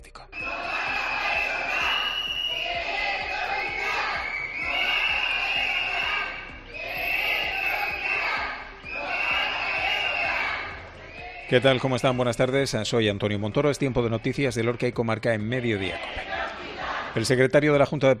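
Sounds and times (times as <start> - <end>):
protesters blowing whistles outside hospital: 0.3 - 13.0
speech: 11.5 - 16.4, 17.2 - 18.1.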